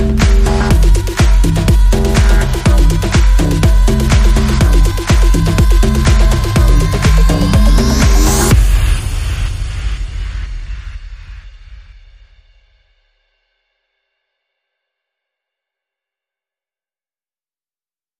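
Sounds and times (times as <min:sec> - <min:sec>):
beat: 0:00.0 - 0:11.5
bass: 0:00.0 - 0:12.3.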